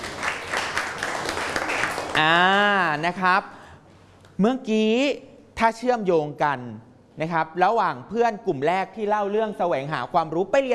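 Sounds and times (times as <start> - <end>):
audience applause after a Buddhist-themed talk: 0.0 - 2.6
speech: 2.2 - 3.6, 4.4 - 10.7.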